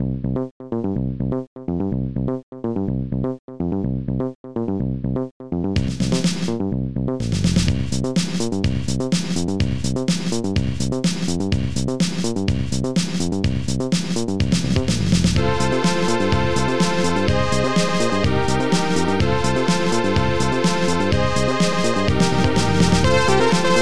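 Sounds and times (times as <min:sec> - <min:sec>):
clean bass: 0:00.0 - 0:13.8, 0:14.4 - 0:23.7.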